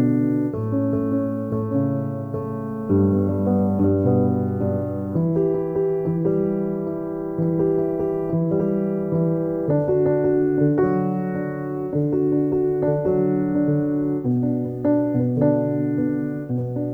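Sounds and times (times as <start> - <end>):
piano preludes: 0.0 - 16.9.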